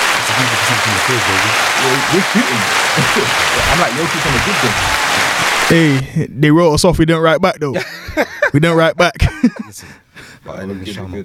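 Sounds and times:
applause: 0.0s - 6.0s
laughter: 0.0s - 6.0s, 7.8s - 9.8s
speech: 0.4s - 11.2s.

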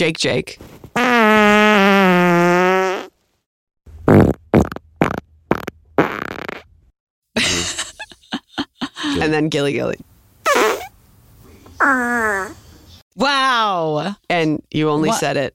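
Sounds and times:
speech: 0.0s - 1.6s, 9.2s - 10.1s, 11.9s - 12.6s, 13.2s - 15.5s
fart: 1.0s - 3.2s, 4.0s - 6.7s, 10.4s - 10.9s.

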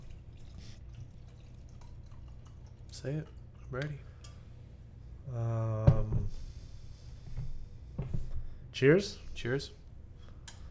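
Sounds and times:
wine pouring into a cup: 0.0s - 3.7s
speech: 3.0s - 4.1s, 5.3s - 6.4s, 8.8s - 9.8s.

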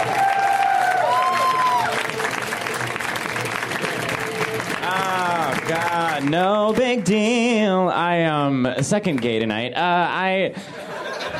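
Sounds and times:
audience applause welcoming a comedian: 0.0s - 7.5s
speech: 5.7s - 10.8s
laughter: 10.5s - 11.3s.

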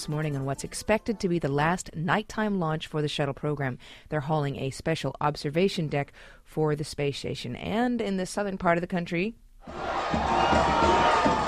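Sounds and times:
speech: 0.0s - 11.4s
New Orleans Saints fans celebrating their first Super Bowl win: 9.7s - 11.4s.

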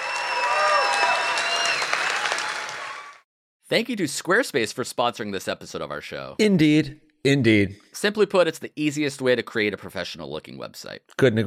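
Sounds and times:
studio audience round of applause: 0.0s - 3.2s
speech: 3.7s - 11.4s.

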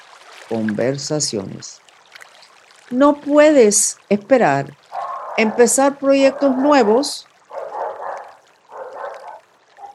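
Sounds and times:
speech: 0.5s - 1.9s, 2.9s - 7.3s
pet dog barking: 4.9s - 9.9s.

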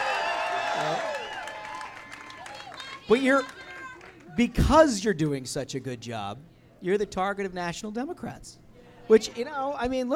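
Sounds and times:
hands clapping: 0.0s - 4.7s
large crowd cheering: 0.0s - 4.8s
speech: 3.1s - 3.6s, 4.4s - 10.1s.

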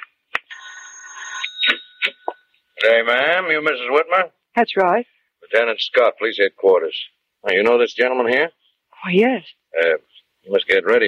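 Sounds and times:
doorbell buzzing: 0.5s - 2.6s
speech: 2.8s - 11.0s.

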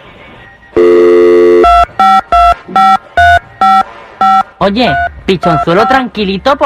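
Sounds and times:
telephone dial tone: 0.8s - 2.2s
touch-tone beeps dialing a phone number: 0.8s - 6.0s
speech: 4.6s - 6.6s.

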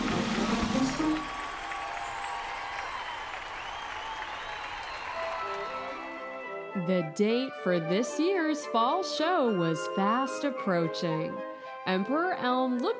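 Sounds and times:
crowd applauding and cheering: 0.0s - 6.8s
speech: 6.8s - 12.9s.

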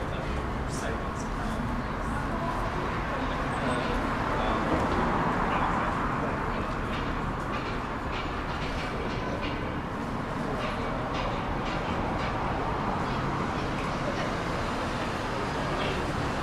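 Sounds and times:
dense rumble of traffic in Manchester: 0.0s - 16.4s
trams passing overhead on a bridge in Manchester: 0.0s - 16.4s
clacks and clicks: 4.7s - 16.4s.

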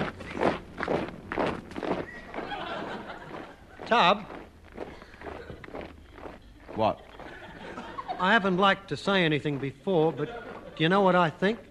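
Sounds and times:
marching footsteps of an escort, radio comedy sound effect: 0.0s - 11.6s
laughter: 2.3s - 4.1s, 4.9s - 5.8s, 6.4s - 11.6s
speech: 3.9s - 4.3s, 6.8s - 7.0s, 8.2s - 11.6s.

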